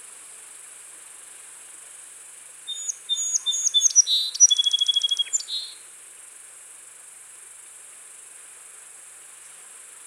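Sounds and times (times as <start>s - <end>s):
song sparrow (Melospiza melodia) singing: 2.7s - 5.8s.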